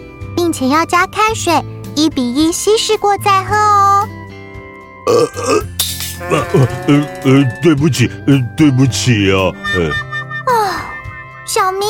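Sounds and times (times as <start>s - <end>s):
speech: 0.5s - 4.2s, 5.1s - 10.0s
burp after drinking a carbonated drink: 5.0s - 7.6s.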